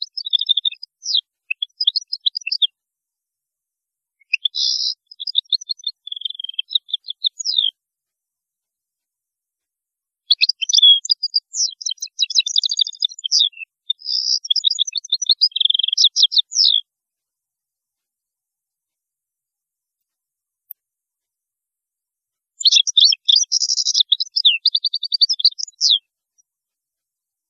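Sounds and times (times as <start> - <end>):
European goldfinch singing: 0.0 - 2.7, 4.2 - 7.7, 10.3 - 16.8, 22.6 - 26.0.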